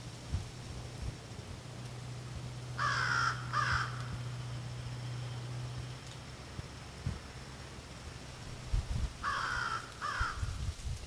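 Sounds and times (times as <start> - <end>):
constant low hum: 0.0 - 11.0
American Crow cawing: 2.8 - 4.2, 9.2 - 10.6.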